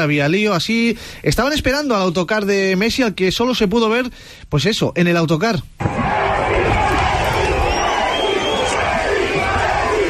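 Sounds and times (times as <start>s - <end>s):
speech: 0.0s - 6.0s
large crowd of football fans shouting: 5.8s - 10.0s.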